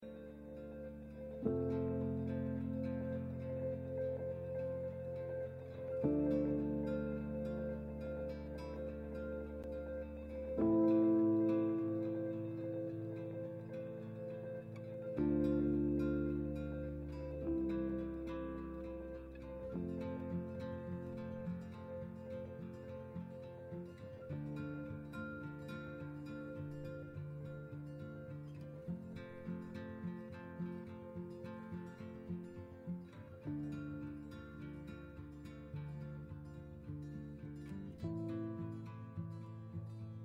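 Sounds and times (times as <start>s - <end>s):
forest morning background music: 0.0s - 40.1s.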